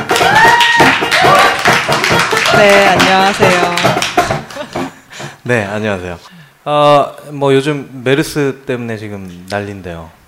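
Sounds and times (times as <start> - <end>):
audience applause: 0.0 - 4.9
speech: 2.6 - 4.2, 5.5 - 10.2.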